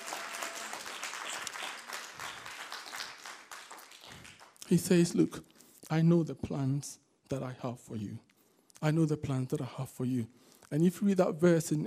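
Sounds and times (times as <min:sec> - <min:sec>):
audience hand clapping: 0:00.0 - 0:05.3
speech: 0:04.7 - 0:11.8.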